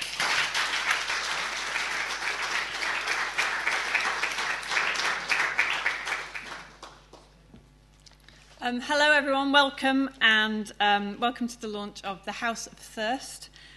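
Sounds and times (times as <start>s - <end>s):
audience applause at a poetry-in-translation magazine launch in Ledbury: 0.0s - 7.3s
speech: 8.7s - 13.5s.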